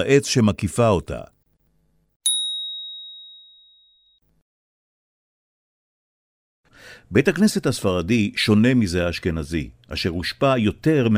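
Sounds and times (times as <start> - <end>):
speech: 0.0 - 1.4, 7.1 - 11.1
single bright bell strike: 2.3 - 4.2.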